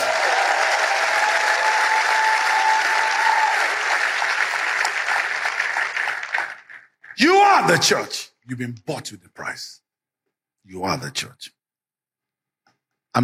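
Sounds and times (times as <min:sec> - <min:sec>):
faint cheer: 0:00.0 - 0:06.5
audience applause: 0:00.0 - 0:07.8
speech: 0:07.6 - 0:09.8, 0:10.6 - 0:11.6.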